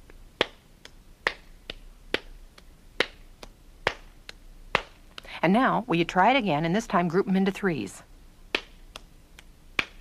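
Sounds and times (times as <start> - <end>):
hand claps grouped in twos, accented: 0.4 - 5.3, 8.5 - 9.9
speech: 5.4 - 8.1.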